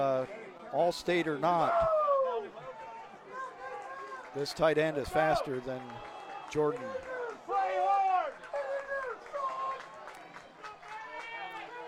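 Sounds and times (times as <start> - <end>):
speech: 0.0 - 2.0, 4.4 - 7.1
stadium crowd cheering on their team: 0.0 - 11.8.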